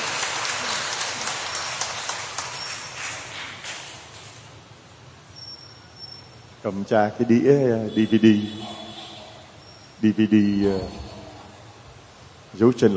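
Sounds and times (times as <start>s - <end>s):
round of applause: 0.0s - 4.0s
speech: 6.6s - 8.8s, 10.0s - 11.1s, 12.6s - 12.9s.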